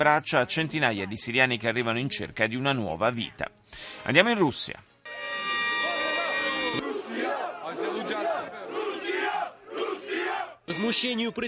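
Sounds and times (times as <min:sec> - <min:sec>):
speech: 0:00.0 - 0:04.9, 0:10.7 - 0:11.4
crowd of street protesters: 0:05.1 - 0:11.4.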